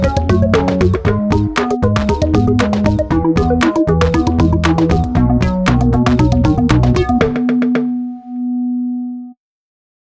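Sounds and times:
foreboding discordant beat: 0:00.0 - 0:08.4.

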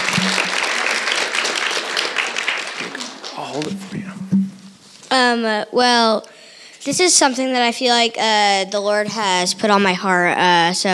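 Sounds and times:
audience applause: 0:00.0 - 0:03.7
speech: 0:03.6 - 0:04.3, 0:05.1 - 0:10.9.

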